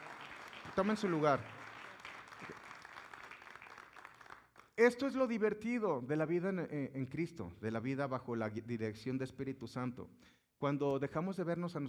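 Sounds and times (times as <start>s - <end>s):
audience applause: 0.0s - 4.6s
speech: 0.8s - 1.6s, 4.8s - 11.8s.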